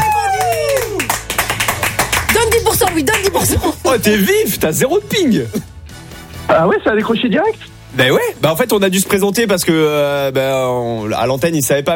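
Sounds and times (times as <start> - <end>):
audience applause: 0.0 - 3.6
speech: 3.4 - 5.7, 6.5 - 11.9.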